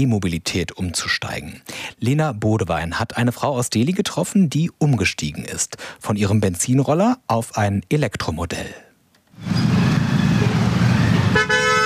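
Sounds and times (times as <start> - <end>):
speech: 0.0 - 8.8
car horns honking in morning city traffic: 10.0 - 11.8.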